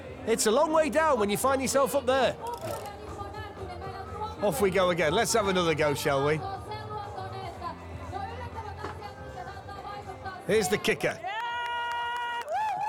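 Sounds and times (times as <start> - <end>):
speech: 0.2 - 3.0, 4.4 - 6.5, 10.5 - 11.3
crowd cheering: 11.1 - 12.8.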